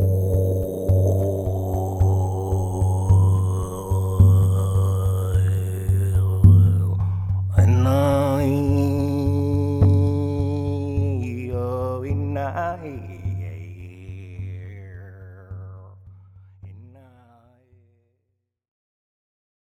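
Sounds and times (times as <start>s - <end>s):
drum: 0.0s - 14.8s.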